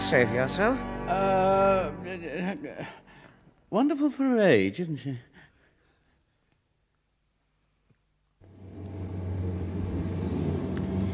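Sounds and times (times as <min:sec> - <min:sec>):
speech: 0:00.1 - 0:03.0, 0:03.7 - 0:05.3
car engine rumble on the drive home from a Royal film premiere: 0:08.4 - 0:11.1.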